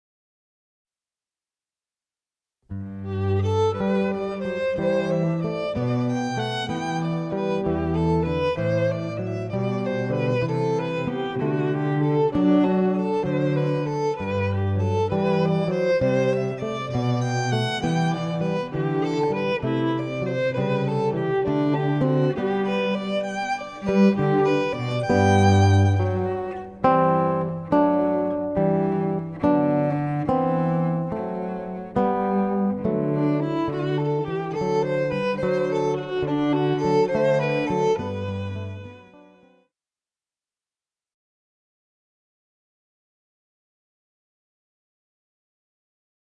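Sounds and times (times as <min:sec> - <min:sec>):
guitar: 0:02.7 - 0:39.5
cello: 0:02.7 - 0:39.6
violin: 0:02.8 - 0:39.6.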